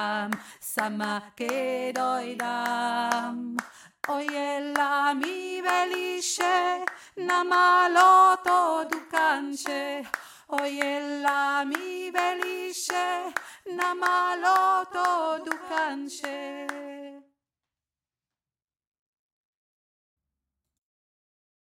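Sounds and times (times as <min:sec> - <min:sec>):
middle voice singing: 0:00.0 - 0:17.3.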